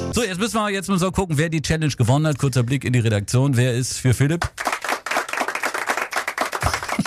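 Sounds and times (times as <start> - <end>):
speech: 0.2 - 4.7
restrained applause from a small studio team: 4.5 - 7.0.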